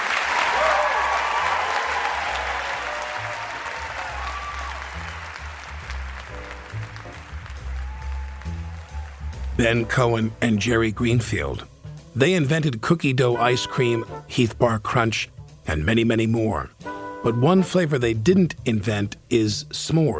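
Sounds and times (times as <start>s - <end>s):
large crowd applauding: 0.0s - 9.8s
scattered whoops and cheers: 0.1s - 5.5s, 7.4s - 9.6s
speech: 9.6s - 20.1s.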